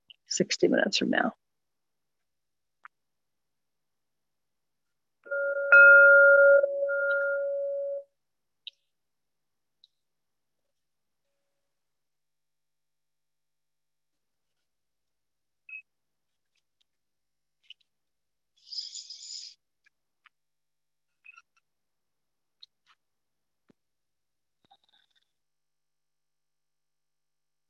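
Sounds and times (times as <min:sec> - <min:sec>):
speech: 0:00.3 - 0:01.4
meditation bell ringing: 0:05.3 - 0:08.1.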